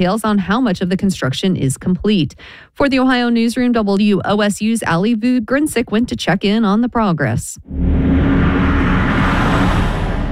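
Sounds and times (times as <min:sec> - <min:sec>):
speech: 0:00.0 - 0:08.2
heavy trucks hauling materials on rural roads near a construction site: 0:07.7 - 0:10.3
road noise: 0:07.7 - 0:10.3.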